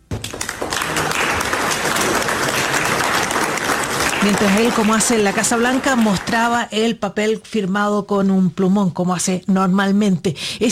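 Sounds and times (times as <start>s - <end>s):
leaders applauding a signing: 0.0s - 6.7s
speech: 4.2s - 10.7s.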